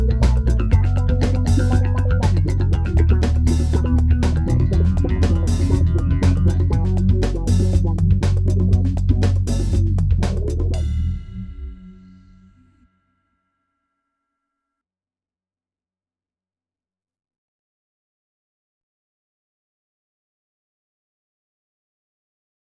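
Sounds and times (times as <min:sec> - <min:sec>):
bass music: 0:00.0 - 0:12.8.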